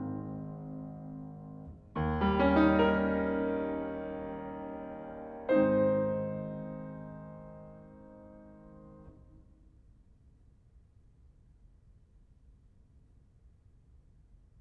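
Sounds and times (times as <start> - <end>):
piano etude in G sharp minor: 0.0 - 9.4.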